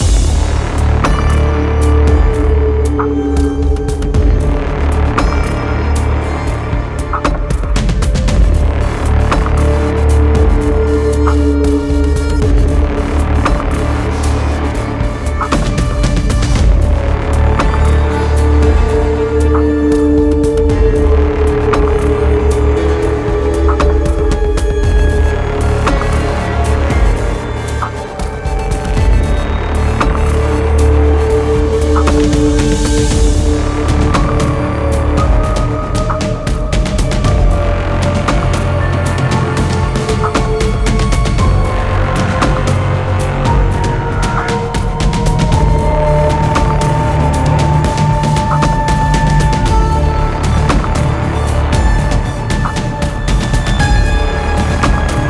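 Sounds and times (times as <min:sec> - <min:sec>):
battle music: 0:00.0 - 0:55.2.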